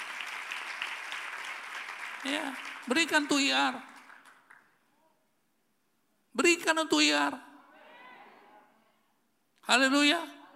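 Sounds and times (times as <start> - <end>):
crowd applause: 0.0 - 3.3
speech: 2.2 - 3.9, 6.4 - 7.4, 9.7 - 10.4.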